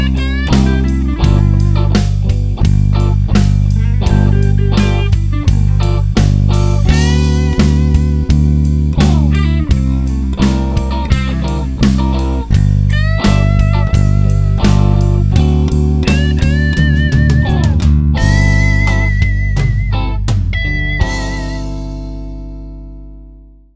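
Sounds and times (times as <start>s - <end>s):
bass guitar playthrough: 0.0s - 23.6s.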